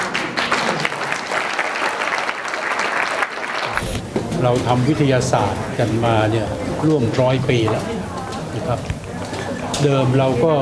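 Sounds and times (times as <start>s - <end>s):
applause: 0.0s - 3.9s
speech: 4.4s - 8.0s, 8.6s - 9.0s, 9.8s - 10.6s.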